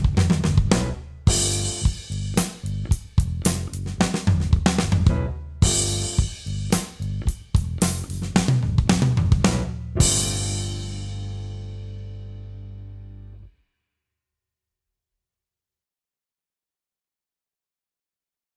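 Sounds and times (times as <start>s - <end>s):
pop drum fills: 0.0s - 12.1s.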